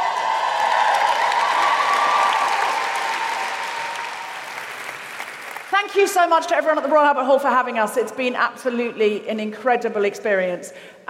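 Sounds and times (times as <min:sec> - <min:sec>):
crowd clapping and cheering: 0:00.0 - 0:06.3
speech: 0:05.8 - 0:11.0.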